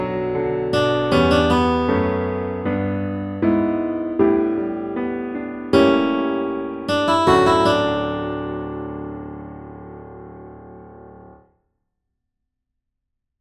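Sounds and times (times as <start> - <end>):
accompaniment melody: 0.7 - 9.3.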